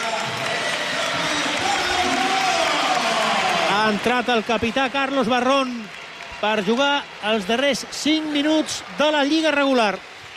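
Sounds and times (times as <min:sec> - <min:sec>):
crowd applause: 0:00.0 - 0:10.3
speech: 0:03.9 - 0:10.1.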